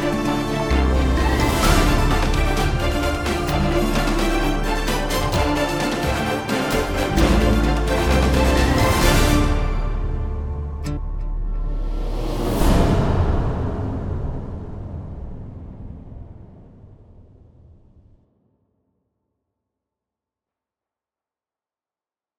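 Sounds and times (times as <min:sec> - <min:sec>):
suspenseful action music: 0:00.0 - 0:17.9.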